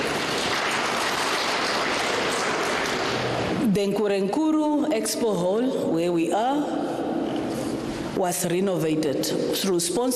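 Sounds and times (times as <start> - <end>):
audience clapping: 0.0 - 3.6
speech: 3.8 - 6.9, 8.2 - 10.1.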